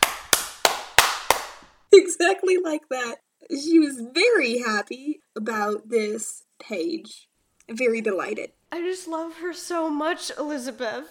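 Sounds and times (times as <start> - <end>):
hands applauding: 0.0 - 1.8
speech: 2.0 - 11.0.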